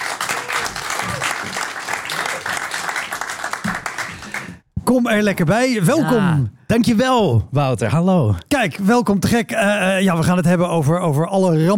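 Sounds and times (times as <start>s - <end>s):
loud audience applause: 0.0s - 4.6s
speech: 4.9s - 11.7s.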